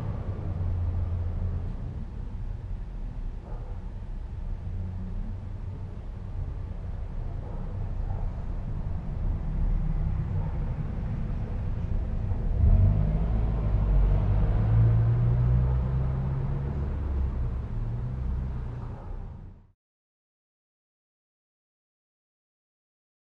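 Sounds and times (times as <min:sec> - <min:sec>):
urban trucks passing at night, exterior: 0:00.0 - 0:03.6, 0:04.7 - 0:19.6.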